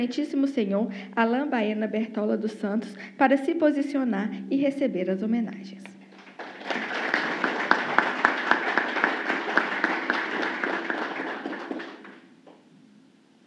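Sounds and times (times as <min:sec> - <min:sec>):
speech: 0:00.0 - 0:06.0
audience applause: 0:06.1 - 0:12.3.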